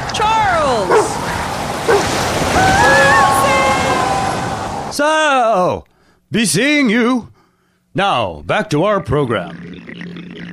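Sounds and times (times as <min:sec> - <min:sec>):
ocean surf roaring at the seashore: 0:00.0 - 0:05.0
water splash: 0:00.6 - 0:05.0
speech: 0:05.0 - 0:07.3, 0:08.0 - 0:10.1.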